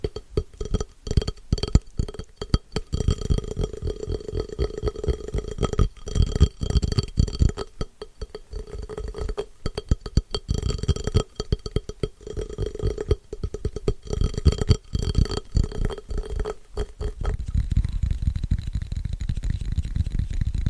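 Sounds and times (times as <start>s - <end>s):
rapid scratchy tapping: 0.0s - 20.6s
low rough rumble: 16.1s - 20.6s.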